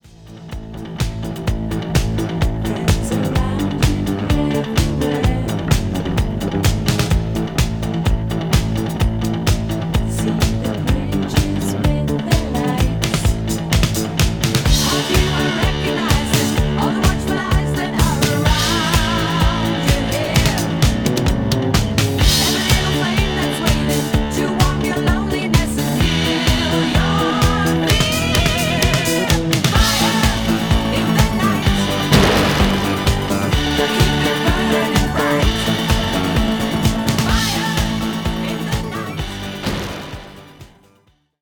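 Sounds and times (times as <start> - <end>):
instrumental music: 0.2 - 40.9.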